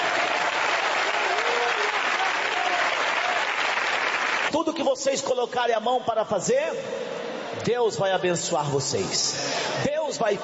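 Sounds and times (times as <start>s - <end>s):
audience clapping hands: 0.0s - 4.8s
speech: 4.5s - 10.4s.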